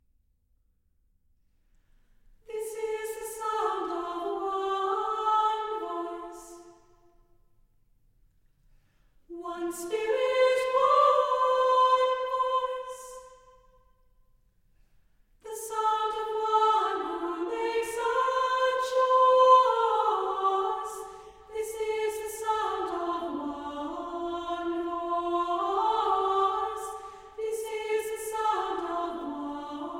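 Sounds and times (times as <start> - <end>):
chamber singers choir singing: 2.5 - 7.1, 9.3 - 13.7, 15.4 - 29.9.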